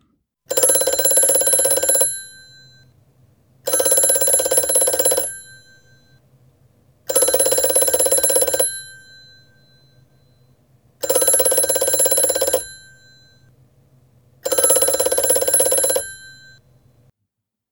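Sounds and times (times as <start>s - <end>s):
telephone ringing: 0.5s - 3.0s, 3.7s - 6.3s, 7.0s - 13.6s, 14.4s - 16.9s.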